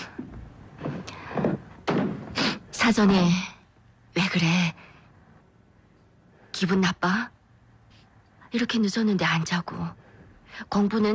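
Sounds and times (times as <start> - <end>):
knocks and thumps: 0.1 - 2.6
room door opening onto a corridor: 0.8 - 2.6
speech: 2.9 - 3.5, 4.2 - 4.8, 6.6 - 7.4, 8.5 - 10.0, 10.6 - 11.1.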